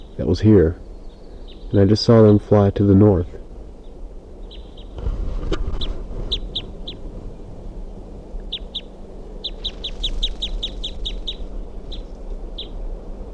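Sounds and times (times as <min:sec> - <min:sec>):
wild bird calling in sharp high chirps: 0:00.0 - 0:02.7, 0:03.8 - 0:05.0, 0:05.7 - 0:07.0, 0:08.4 - 0:12.8
speech: 0:00.2 - 0:00.9, 0:01.7 - 0:03.4
steady low rumble: 0:01.7 - 0:13.3.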